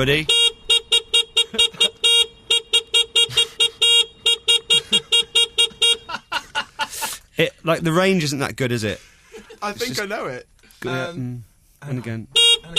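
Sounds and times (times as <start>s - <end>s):
speech: 0.0s - 0.4s, 7.4s - 12.4s
camp scooter horn honking a tune: 0.2s - 6.2s, 12.4s - 12.7s
laughter: 1.5s - 2.0s, 4.7s - 5.3s, 5.9s - 7.3s, 9.3s - 9.8s.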